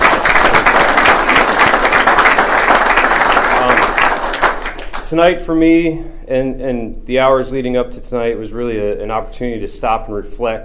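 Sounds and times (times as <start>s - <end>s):
audience applause: 0.0s - 5.1s
speech: 5.1s - 10.6s.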